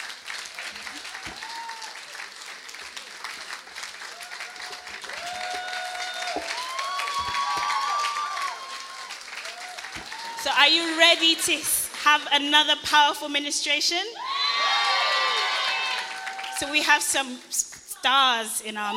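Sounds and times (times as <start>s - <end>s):
audience applause: 0.0s - 12.0s, 14.3s - 16.7s
speech: 10.6s - 14.2s, 16.6s - 18.9s.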